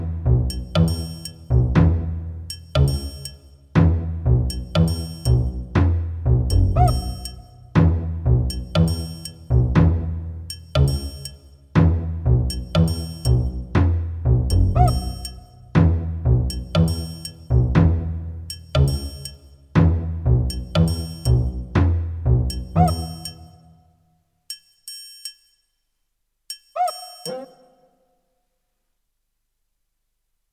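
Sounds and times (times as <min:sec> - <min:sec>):
lighthearted advertising music: 0:00.0 - 0:23.6.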